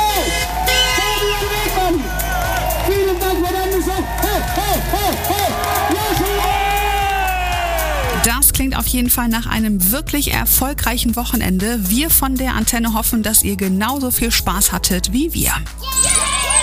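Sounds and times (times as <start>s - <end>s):
horn-like toots: 0.0s - 8.4s
live festival crowd cheering: 0.0s - 8.4s, 15.8s - 16.6s
speech: 8.8s - 16.1s.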